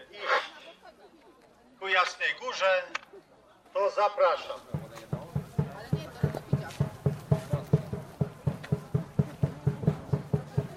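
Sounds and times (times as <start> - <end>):
speech: 2.0 - 4.8
beating on a cauldron during the Łowicz walking pilgrimage: 4.6 - 10.7.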